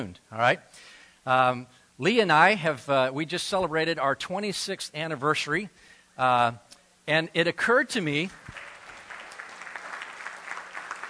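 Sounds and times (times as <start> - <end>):
speech: 0.0 - 8.6
faint sympathy clapping from an audience: 8.2 - 11.0.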